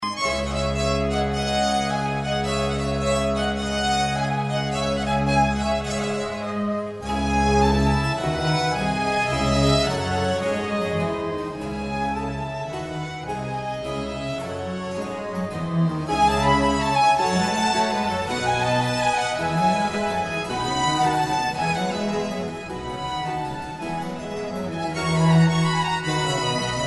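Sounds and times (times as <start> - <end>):
concerto violin: 0.0 - 26.8.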